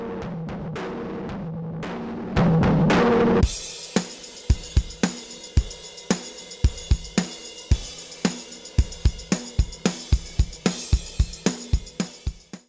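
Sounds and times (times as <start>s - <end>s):
dry drums: 2.0s - 12.6s.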